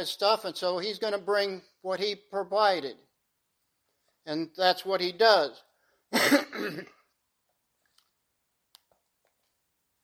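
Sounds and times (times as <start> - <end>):
speech: 0.0 - 3.1, 4.2 - 7.0
man clearing throat: 6.1 - 7.0.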